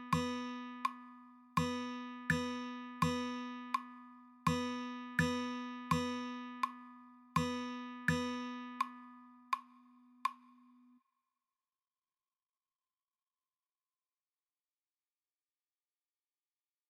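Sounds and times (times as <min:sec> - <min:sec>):
guitar rhythm practice: 0:00.0 - 0:09.5.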